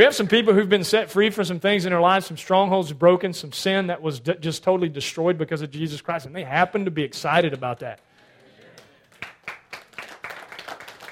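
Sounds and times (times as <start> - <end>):
speech: 0.0 - 8.1
audience clapping: 7.3 - 11.1.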